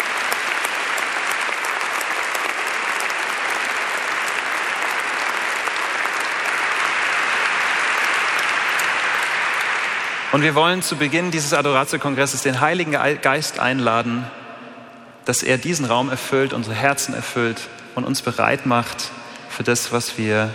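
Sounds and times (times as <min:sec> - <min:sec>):
audience applause: 0:00.0 - 0:10.9
speech: 0:10.4 - 0:14.4, 0:15.2 - 0:20.5.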